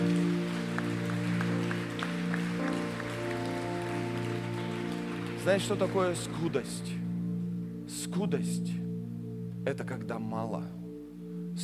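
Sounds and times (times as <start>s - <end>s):
crowd applauding: 0.0s - 7.0s
sustained low musical chord: 0.0s - 11.6s
speech: 5.5s - 7.0s, 8.2s - 8.8s, 9.6s - 10.8s.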